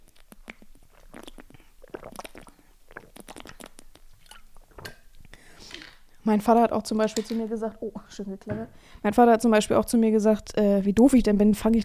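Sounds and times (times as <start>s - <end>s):
sipping and swallowing water: 0.0s - 6.2s
speech: 6.3s - 11.8s.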